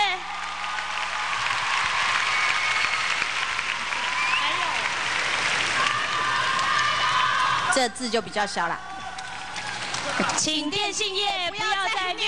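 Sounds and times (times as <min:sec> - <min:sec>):
large audience applause: 0:00.2 - 0:07.7, 0:09.0 - 0:10.5
speech: 0:07.8 - 0:08.9, 0:10.2 - 0:12.2.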